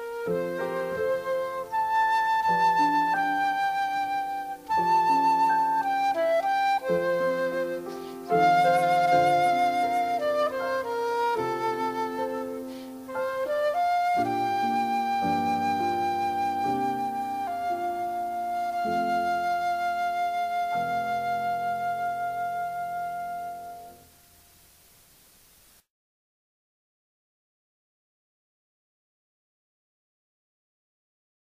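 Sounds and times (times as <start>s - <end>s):
flute: 0.0s - 24.2s
piano: 0.0s - 25.4s.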